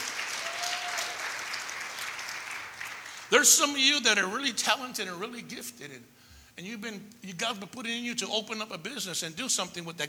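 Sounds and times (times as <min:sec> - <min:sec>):
audience applause: 0:00.0 - 0:03.4
speech: 0:03.3 - 0:10.0.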